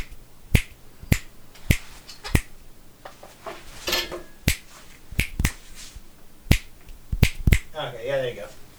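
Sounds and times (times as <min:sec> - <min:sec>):
finger snapping: 0:00.0 - 0:02.5, 0:04.5 - 0:05.6, 0:06.5 - 0:07.7
speech: 0:07.8 - 0:08.6.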